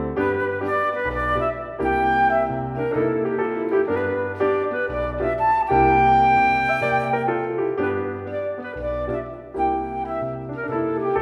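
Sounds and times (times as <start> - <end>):
flute: 0.2 - 11.2.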